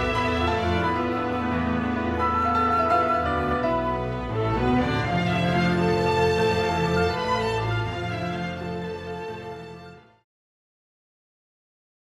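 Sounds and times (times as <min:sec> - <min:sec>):
harp and piano piece: 0:00.0 - 0:08.7.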